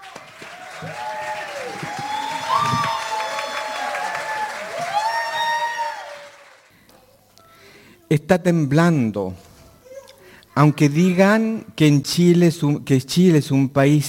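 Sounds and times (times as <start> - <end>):
audience applause: 0.0 - 6.8
speech: 0.8 - 1.1, 8.1 - 9.4, 10.6 - 14.0.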